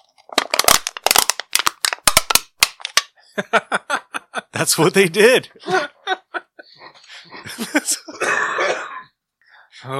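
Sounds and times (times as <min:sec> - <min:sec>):
metal can being crumpled as submarine sound effect: 0:00.0 - 0:03.1
laughter: 0:03.3 - 0:04.6, 0:05.5 - 0:08.2
speech: 0:03.4 - 0:03.9, 0:04.6 - 0:06.0.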